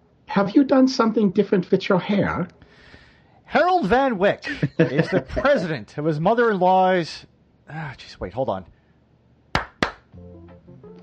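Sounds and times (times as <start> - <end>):
speech: 0.4 - 2.6, 3.5 - 8.8
laughter: 3.8 - 5.8
hand claps: 9.5 - 10.1.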